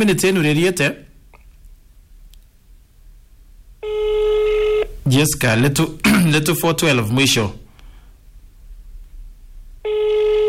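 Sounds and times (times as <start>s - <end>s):
speech: 0.0s - 1.1s, 5.1s - 7.6s
telephone ringback tone on a mobile phone call: 3.8s - 4.9s, 9.8s - 10.4s.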